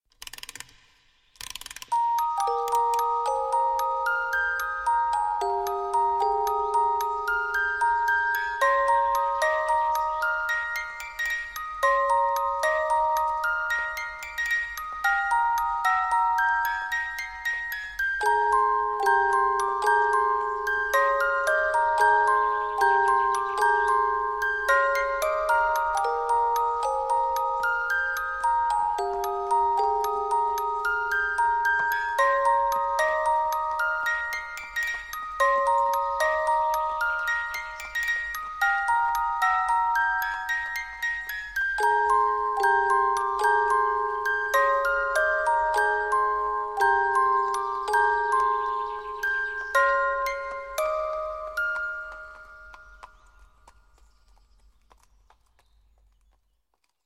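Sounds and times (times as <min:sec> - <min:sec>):
music box: 0:01.4 - 0:53.7.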